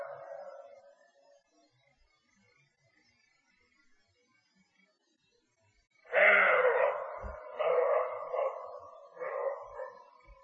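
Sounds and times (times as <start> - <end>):
roe deer barking: 0.0 - 0.8, 6.1 - 10.4.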